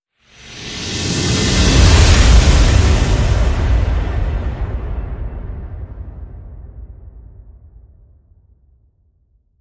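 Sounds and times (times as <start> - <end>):
whoosh: 0.2 - 7.2.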